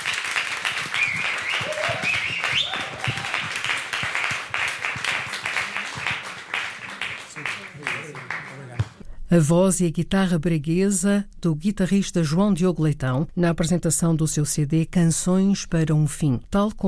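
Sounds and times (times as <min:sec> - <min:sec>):
audience applause: 0:00.0 - 0:09.0
speech: 0:09.3 - 0:16.8.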